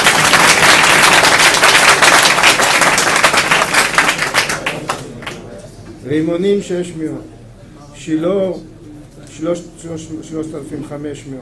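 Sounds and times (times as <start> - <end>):
crowd applauding: 0.0 - 5.4
speech: 6.1 - 7.4, 8.0 - 8.7, 9.4 - 11.4.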